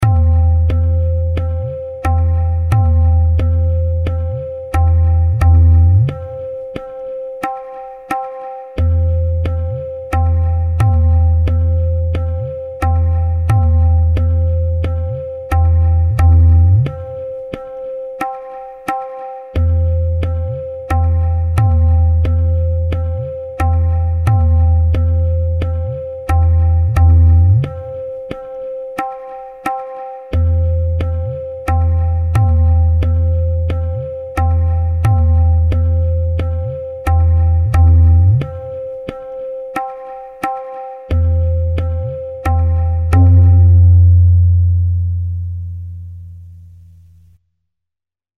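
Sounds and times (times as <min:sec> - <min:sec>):
tintal tala rhythm: 0:00.0 - 0:47.4.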